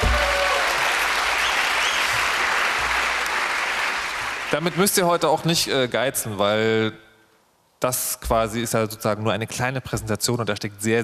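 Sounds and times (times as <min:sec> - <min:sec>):
audience applause: 0:00.0 - 0:05.2
speech: 0:04.6 - 0:07.0, 0:07.8 - 0:11.0.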